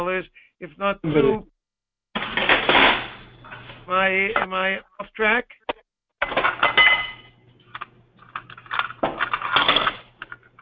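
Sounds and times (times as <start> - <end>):
speech: 0.0 - 1.5, 3.9 - 5.6
dishes clattering: 2.2 - 3.7, 6.2 - 7.4, 8.2 - 10.5.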